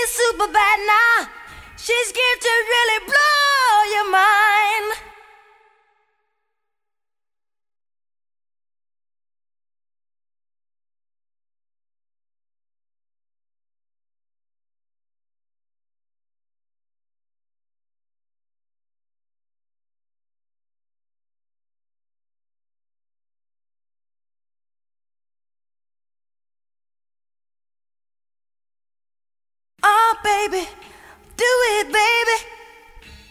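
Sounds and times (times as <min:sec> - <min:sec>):
a cappella singing: 0:00.0 - 0:05.9, 0:29.8 - 0:33.2.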